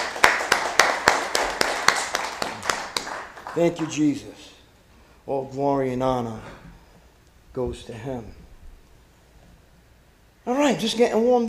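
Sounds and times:
audience applauding: 0:00.0 - 0:04.2
speech: 0:03.6 - 0:04.5, 0:05.3 - 0:06.6, 0:07.6 - 0:08.4, 0:10.4 - 0:11.4.

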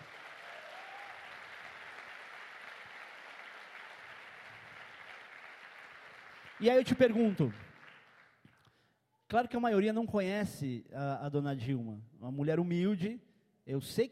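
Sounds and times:
audience applause: 0:00.0 - 0:08.4
speech: 0:06.6 - 0:07.6, 0:09.3 - 0:14.1.

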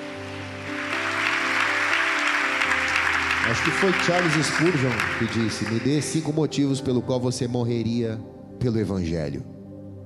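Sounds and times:
audience applauding loudly: 0:00.0 - 0:06.3
speech: 0:03.5 - 0:09.5.

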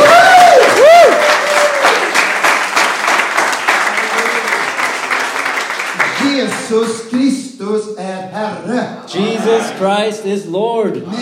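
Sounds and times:
crowd clapping: 0:00.0 - 0:07.2
speech: 0:06.7 - 0:07.8, 0:08.5 - 0:11.2.

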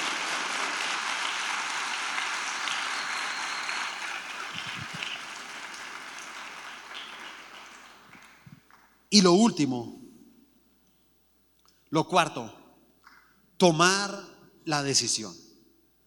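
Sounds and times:
audience applauding: 0:00.0 - 0:09.0
speech: 0:09.2 - 0:10.0, 0:11.9 - 0:12.6, 0:13.6 - 0:15.4.

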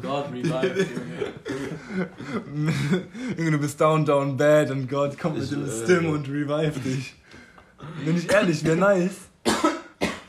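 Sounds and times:
speech: 0:00.0 - 0:07.2, 0:07.8 - 0:09.3
laughter: 0:00.1 - 0:03.6
harsh breathy coughs: 0:00.7 - 0:03.1, 0:09.4 - 0:10.2.

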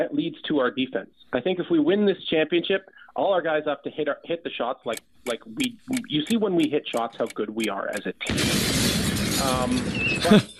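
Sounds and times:
speech: 0:00.0 - 0:10.5
bomb sound effect: 0:08.2 - 0:10.4
shattering glass and debris: 0:08.3 - 0:10.5.

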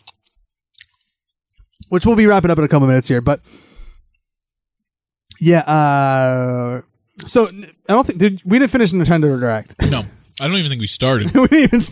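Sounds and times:
person chewing a peanut butter cup: 0:00.8 - 0:01.9
speech: 0:01.9 - 0:03.7, 0:05.4 - 0:11.8
laughter: 0:09.9 - 0:11.8.

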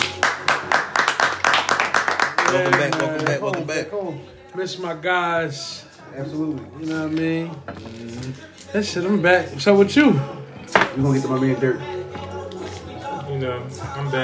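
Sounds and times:
sharp loud hand claps in a steady rhythm: 0:00.0 - 0:03.8
speech: 0:02.5 - 0:10.4, 0:11.0 - 0:12.2, 0:13.4 - 0:14.2.

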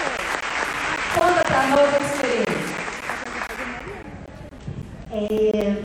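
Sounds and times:
audience applause: 0:00.0 - 0:04.0
speech: 0:01.6 - 0:02.1, 0:05.2 - 0:05.7.

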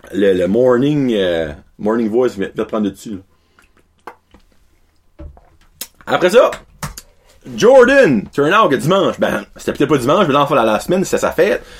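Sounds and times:
speech: 0:00.1 - 0:03.3, 0:06.1 - 0:06.7, 0:07.4 - 0:11.7
person sipping water: 0:03.4 - 0:05.1.

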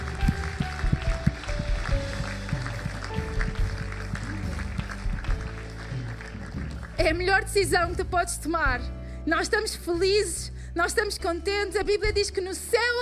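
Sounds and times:
audience applause: 0:00.0 - 0:07.0
low bass pulse: 0:00.0 - 0:09.0
sustained keyboard chords: 0:00.0 - 0:10.2
speech: 0:07.0 - 0:12.9.

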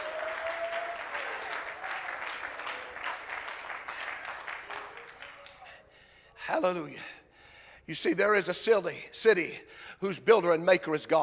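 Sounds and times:
audience clapping hands: 0:00.0 - 0:05.8
speech: 0:06.5 - 0:07.2, 0:07.9 - 0:11.2.

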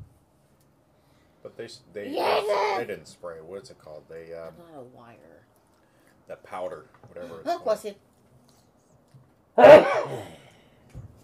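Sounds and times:
speech: 0:01.5 - 0:05.6, 0:06.3 - 0:08.1, 0:09.6 - 0:10.4
person sneezing: 0:09.6 - 0:10.5.

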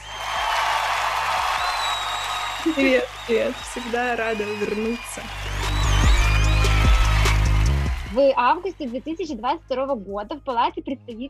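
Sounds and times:
applause added in editing: 0:00.0 - 0:08.4
speech: 0:02.7 - 0:05.5, 0:08.1 - 0:11.2.

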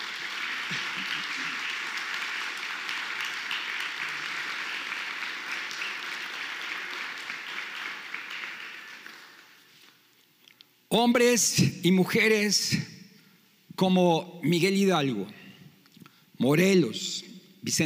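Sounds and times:
audience ovation: 0:00.0 - 0:09.7
speech: 0:10.9 - 0:12.9, 0:13.8 - 0:15.4, 0:16.4 - 0:17.8.

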